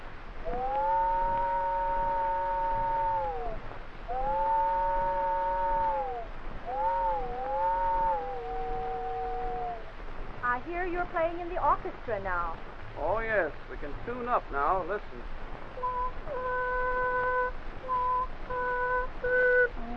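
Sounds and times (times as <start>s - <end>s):
human voice imitating a train whistle: 0.4s - 9.9s, 15.8s - 19.9s
speech: 11.1s - 15.4s.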